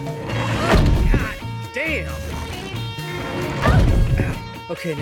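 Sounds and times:
bed slamming into a wall: 0.3 - 1.4, 3.5 - 4.4
speech: 1.9 - 2.3, 4.7 - 5.0.

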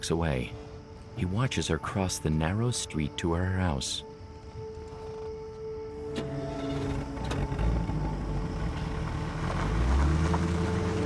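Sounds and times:
speech: 0.0 - 0.6, 1.2 - 4.1
car engine humming as it pulls away from a narrow street: 4.1 - 11.0.

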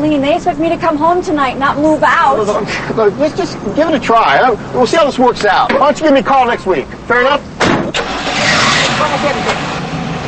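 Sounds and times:
speech: 0.1 - 7.8, 9.0 - 9.6
car engine starting and driving off from a parking lot: 7.4 - 10.2.

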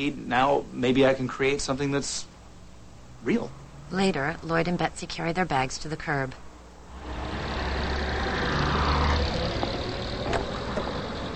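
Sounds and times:
speech: 0.0 - 2.3, 3.2 - 6.4
taxi cab engine idling at curb: 6.9 - 11.3.

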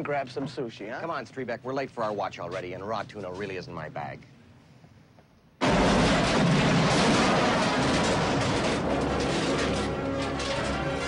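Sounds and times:
speech: 0.0 - 4.4
car exploding across the car park: 5.6 - 11.0.

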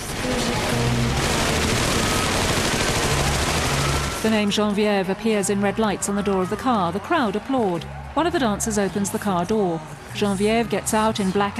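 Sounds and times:
staged machine gun fire: 0.0 - 4.3
speech: 4.2 - 11.5.

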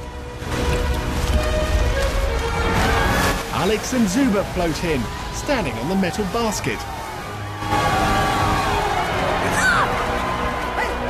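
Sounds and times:
water rushing down a channel: 0.0 - 11.0
speech: 3.7 - 7.0.

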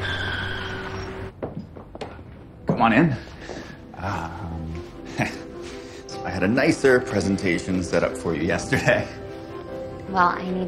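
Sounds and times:
car tires skidding as it swerves out of its lane: 0.0 - 1.3
speech: 2.8 - 3.4, 4.0 - 4.5, 5.2 - 5.4, 6.3 - 9.2, 10.1 - 10.6.

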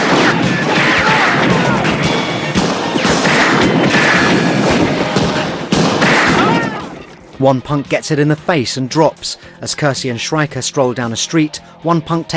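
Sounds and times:
gunfire in a street shootout: 0.0 - 7.1
crashing impacts: 0.0 - 7.2
speech: 7.4 - 12.3.

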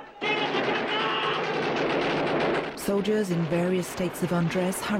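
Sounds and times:
automatic gunfire as hired hands shoot guards: 0.3 - 2.8
speech: 2.9 - 4.9.

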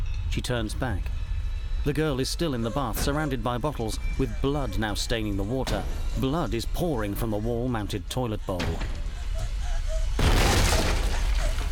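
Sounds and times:
low hum: 0.0 - 11.6
speech: 0.4 - 1.2, 1.8 - 9.0
sledgehammer bursting through a wall: 10.2 - 11.4
scattering debris: 10.2 - 11.6.

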